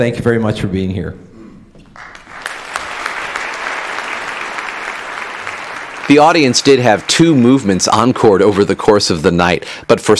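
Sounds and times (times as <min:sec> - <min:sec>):
speech: 0:00.0 - 0:01.3, 0:06.1 - 0:10.1
large concert audience applauding: 0:02.0 - 0:08.9.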